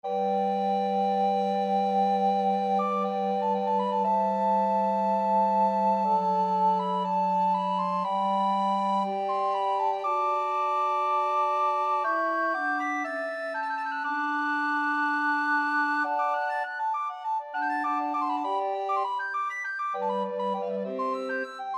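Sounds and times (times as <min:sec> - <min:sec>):
recorder quartet: 0:00.0 - 0:21.7.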